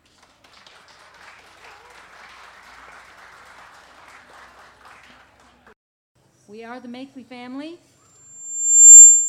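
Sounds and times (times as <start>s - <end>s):
audience applause welcoming a family of singers to the stage: 0.0s - 5.7s
speech: 6.5s - 7.9s.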